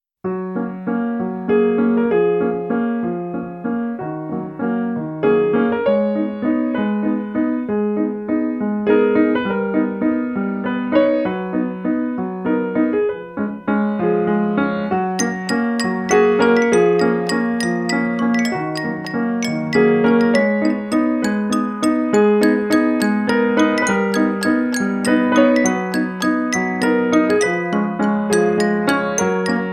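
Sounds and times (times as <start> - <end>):
piano waltz: 0.2 - 29.7
toy piano: 15.1 - 29.7.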